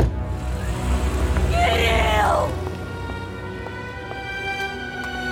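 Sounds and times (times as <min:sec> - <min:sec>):
car starting and driving away: 0:00.1 - 0:05.2.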